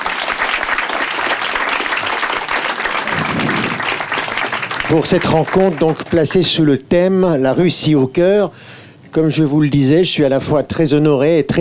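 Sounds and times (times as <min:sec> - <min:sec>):
audience applause: 0:00.0 - 0:06.5
speech: 0:04.9 - 0:11.5.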